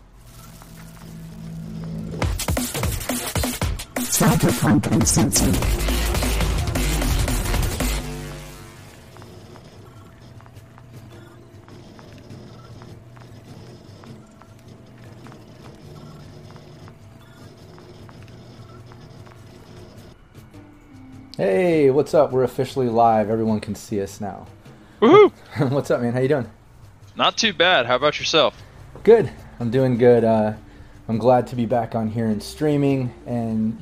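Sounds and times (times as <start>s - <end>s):
footsteps: 0.0s - 3.6s, 7.1s - 21.3s
speech: 4.2s - 6.2s, 21.4s - 26.6s, 27.2s - 33.8s
city traffic: 26.6s - 31.2s.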